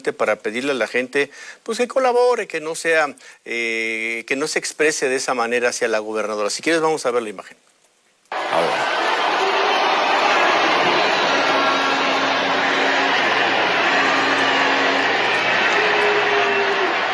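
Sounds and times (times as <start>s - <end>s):
speech: 0.0s - 7.7s
large crowd booing: 8.3s - 17.1s.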